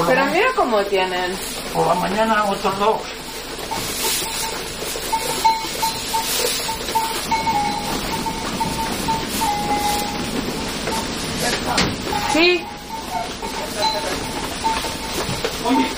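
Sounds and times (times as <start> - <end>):
flock of sheep shuffling: 0.0 - 15.9
small bells clinking: 0.0 - 15.9
speech: 0.1 - 4.1, 11.7 - 12.7, 15.6 - 15.9.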